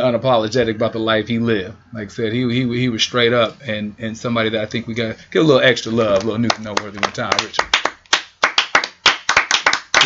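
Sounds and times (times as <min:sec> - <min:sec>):
speech: 0:00.1 - 0:07.8
audience clapping: 0:06.2 - 0:10.0.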